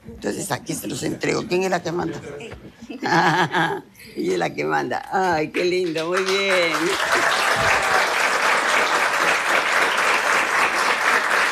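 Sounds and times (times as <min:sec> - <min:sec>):
speech: 0:00.2 - 0:07.7
audience applause: 0:05.8 - 0:11.4.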